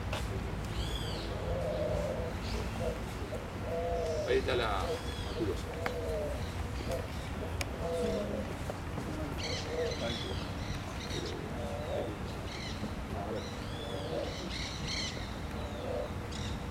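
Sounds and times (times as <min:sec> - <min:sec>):
spotted pigeon: 0:00.1 - 0:08.5, 0:09.3 - 0:16.5.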